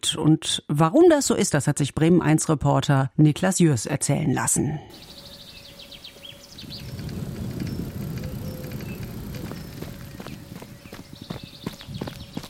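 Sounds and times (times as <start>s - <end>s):
speech: 0.1s - 5.2s
bicycles on the dike: 4.9s - 12.4s
birds in the Blockland: 4.9s - 12.4s.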